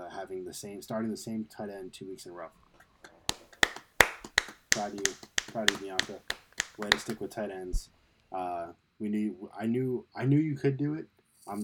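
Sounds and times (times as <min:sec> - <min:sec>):
speech: 0:00.3 - 0:02.6, 0:04.8 - 0:11.6
hand clapping: 0:03.3 - 0:07.3.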